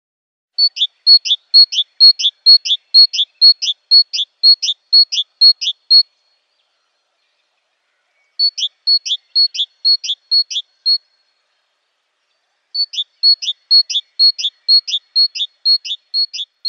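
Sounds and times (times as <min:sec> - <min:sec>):
great tit song: 0:00.6 - 0:06.5, 0:08.3 - 0:11.1, 0:12.7 - 0:16.6
speech: 0:09.0 - 0:10.1.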